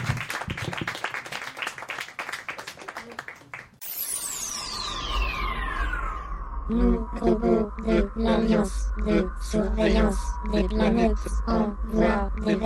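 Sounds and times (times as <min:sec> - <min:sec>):
audience applause: 0:00.0 - 0:03.8
descending whistle: 0:03.8 - 0:12.5
low hum: 0:03.8 - 0:12.6
sweeping electronic tone: 0:03.8 - 0:12.6
speech: 0:06.7 - 0:12.6.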